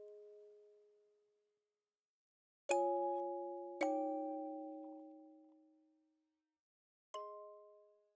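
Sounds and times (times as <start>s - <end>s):
music box: 2.7s - 5.6s, 7.2s - 8.0s.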